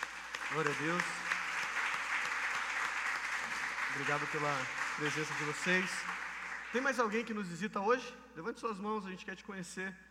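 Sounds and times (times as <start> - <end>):
audience applauding: 0.0 - 7.3
speech: 0.5 - 1.2, 3.9 - 10.0.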